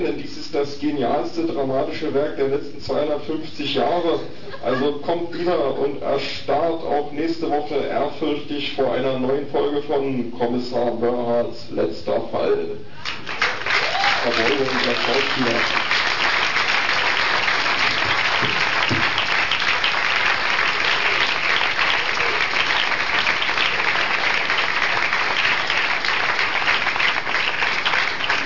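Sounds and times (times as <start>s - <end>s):
speech: 0.0s - 13.4s, 14.2s - 15.9s
laughter: 4.4s - 5.1s
audience applause: 13.0s - 28.4s.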